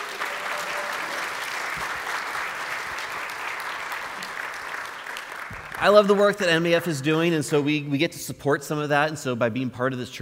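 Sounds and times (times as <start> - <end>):
audience round of applause: 0.0 - 6.7
speech: 5.8 - 10.2.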